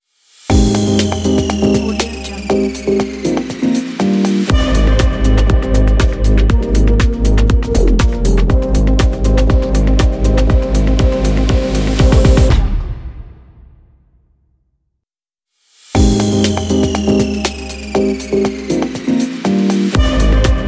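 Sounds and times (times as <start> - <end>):
fashion logo music: 0.5 - 13.7, 16.0 - 20.6.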